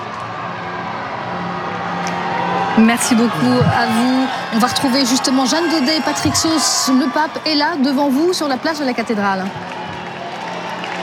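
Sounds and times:
excited crowd cheering the Pope on a cathedral square: 0.0s - 11.0s
high shouts: 2.2s - 10.8s
speech: 2.8s - 9.8s.

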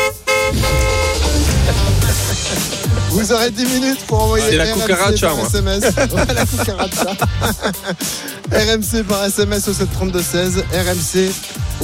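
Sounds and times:
car horn honking: 0.0s - 3.0s
laughter: 1.2s - 8.8s
speech: 3.3s - 11.8s.

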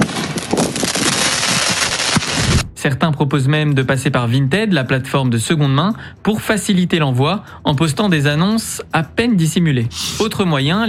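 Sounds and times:
firework mortar shots: 0.0s - 2.7s
speech: 2.8s - 10.8s.

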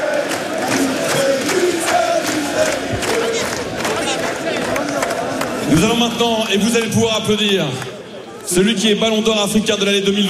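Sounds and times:
football supporters chanting in stadium: 0.0s - 6.0s
speech: 5.8s - 7.9s, 8.5s - 10.2s.

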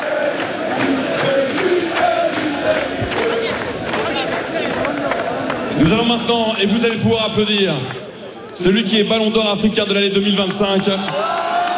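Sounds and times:
thousands of football supporters chanting: 0.0s - 6.2s
speech: 5.8s - 8.0s, 8.6s - 11.4s.

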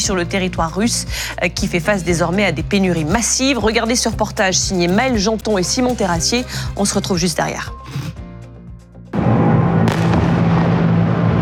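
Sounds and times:
speech: 0.0s - 8.1s
series of explosions from drone strikes: 9.1s - 11.3s.

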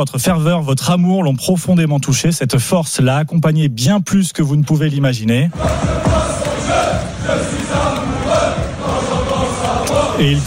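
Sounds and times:
speech: 0.0s - 7.9s, 10.2s - 10.4s
Brest football supporters singing a chant: 5.5s - 10.4s.

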